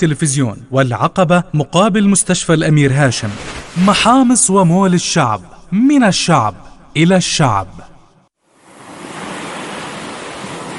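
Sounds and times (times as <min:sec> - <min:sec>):
speech: 0:00.0 - 0:07.9
sea waves: 0:03.2 - 0:04.3, 0:08.4 - 0:10.7.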